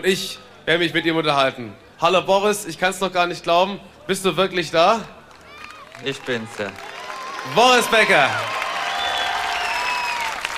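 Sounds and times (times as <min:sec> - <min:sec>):
speech: 0:00.0 - 0:05.2, 0:06.0 - 0:08.6
Berlin audience applause and cheering: 0:05.3 - 0:10.5.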